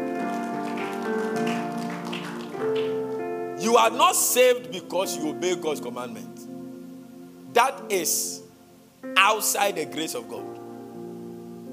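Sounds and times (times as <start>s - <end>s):
audience clapping: 0.0s - 3.3s
sustained keyboard chords: 0.0s - 11.7s
speech: 3.7s - 6.4s, 7.6s - 8.4s, 9.2s - 10.6s.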